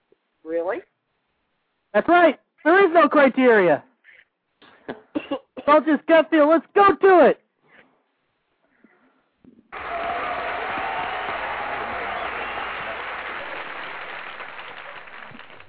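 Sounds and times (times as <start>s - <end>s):
speech: 0.4s - 0.9s, 2.0s - 3.9s, 4.9s - 7.4s
applause: 9.7s - 15.6s.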